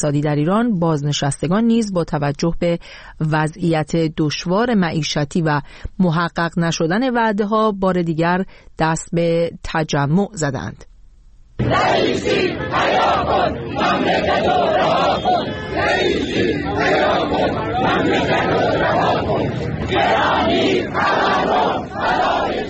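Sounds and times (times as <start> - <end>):
speech: 0.0 - 10.9, 11.6 - 22.6
protesting retirees chanting at a rally in Kermanshah Iran: 11.6 - 22.6.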